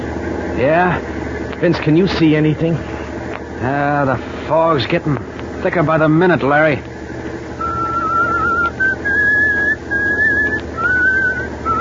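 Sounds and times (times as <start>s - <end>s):
speech: 0.6s - 2.9s, 3.6s - 6.9s
person whistling a tune: 7.6s - 11.8s.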